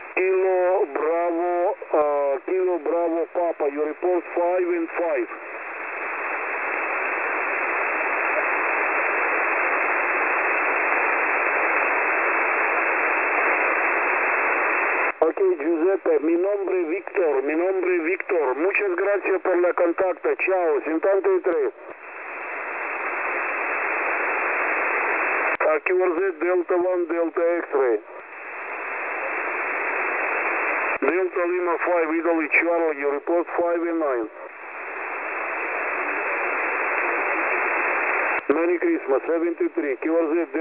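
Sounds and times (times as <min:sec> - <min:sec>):
ham radio transmission on 14244.0 kHz: 0:00.0 - 0:40.6.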